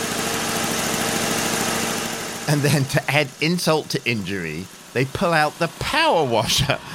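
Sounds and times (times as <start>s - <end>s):
lawnmower engine running: 0.0s - 6.9s
laughter: 2.5s - 3.4s, 5.4s - 6.9s
speech: 2.5s - 6.9s.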